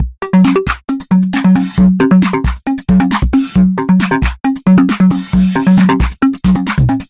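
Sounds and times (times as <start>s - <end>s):
electro techno music: 0.0s - 7.0s.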